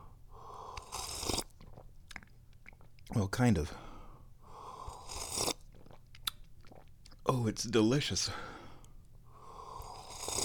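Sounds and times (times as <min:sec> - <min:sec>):
slurping sip of hot tea: 0:00.6 - 0:01.8, 0:04.7 - 0:05.9, 0:09.6 - 0:10.4
speech: 0:03.1 - 0:03.9, 0:07.4 - 0:08.5.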